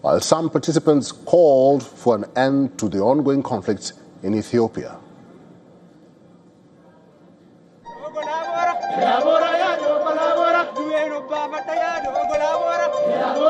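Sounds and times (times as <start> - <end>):
speech: 0.0 - 5.0
festival crowd singing and chanting: 7.9 - 13.4.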